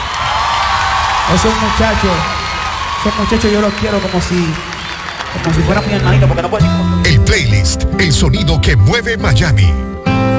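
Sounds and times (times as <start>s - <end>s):
crowd applause and cheering: 0.0s - 7.7s
speech: 1.3s - 2.4s, 3.0s - 4.7s, 5.3s - 10.3s.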